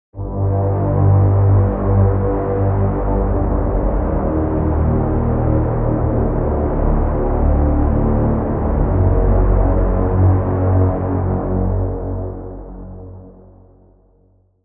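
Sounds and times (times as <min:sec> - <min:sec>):
synth pad: 0:00.2 - 0:13.7.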